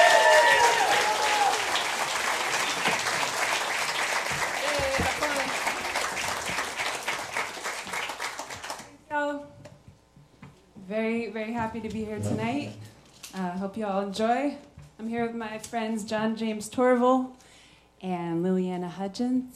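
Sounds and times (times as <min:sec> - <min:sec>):
audience clapping for a country singer at a live evening music show: 0:00.0 - 0:09.0
speech: 0:11.4 - 0:17.4, 0:18.0 - 0:19.5.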